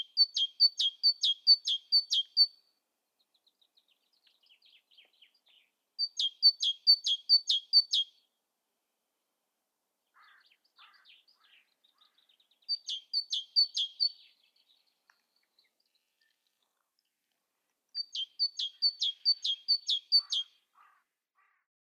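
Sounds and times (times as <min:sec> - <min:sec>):
great tit singing: 0:00.0 - 0:02.6, 0:03.7 - 0:08.1, 0:10.1 - 0:16.4, 0:18.0 - 0:21.0.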